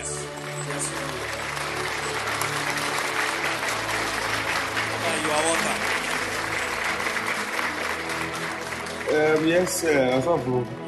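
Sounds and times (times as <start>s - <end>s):
audience clapping: 0.0s - 10.8s
speech: 9.1s - 10.8s.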